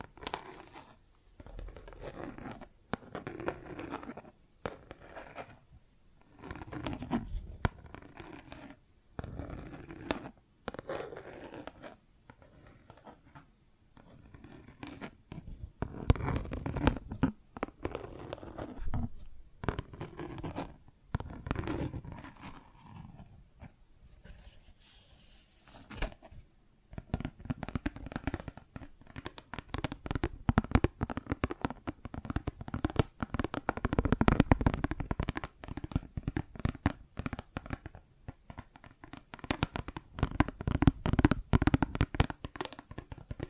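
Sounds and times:
plastic objects tapped and scratched: 6.2s - 10.9s, 11.6s - 23.8s, 25.7s - 43.4s.

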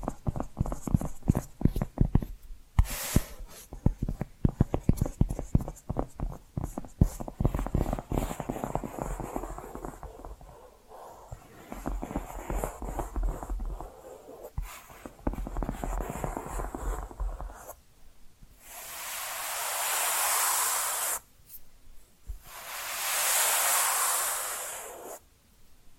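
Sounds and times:
tapping and scratching: 0.0s - 2.3s, 3.7s - 10.6s, 11.3s - 17.8s
smooth hissing strokes: 18.6s - 21.3s, 22.4s - 25.2s.

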